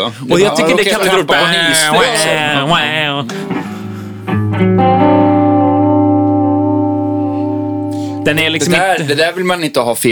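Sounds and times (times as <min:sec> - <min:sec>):
speech: 0:00.0 - 0:03.7, 0:04.6 - 0:05.0, 0:08.2 - 0:10.1
laughter: 0:00.0 - 0:05.0, 0:07.0 - 0:09.6
buzzy distorted sustained tones with lo-fi modulation effect: 0:01.9 - 0:09.0.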